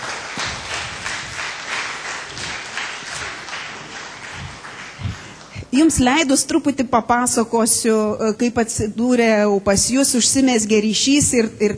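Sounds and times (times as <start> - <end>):
audience applause welcoming a couple at a Lithuanian community gathering in Dublin: 0.0 - 5.6
speech: 5.7 - 11.7.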